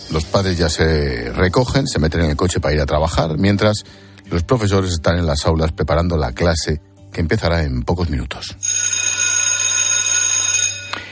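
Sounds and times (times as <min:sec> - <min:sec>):
speech: 0:00.1 - 0:08.8
electric school bell ringing: 0:08.6 - 0:11.1.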